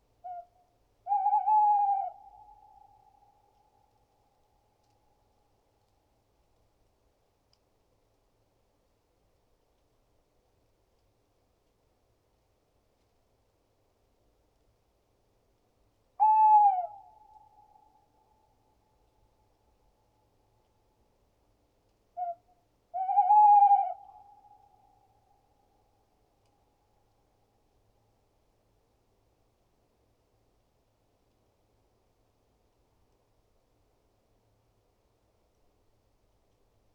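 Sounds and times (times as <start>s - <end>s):
tawny owl Strix aluco: 0.2s - 4.0s, 16.2s - 18.2s, 22.2s - 25.4s.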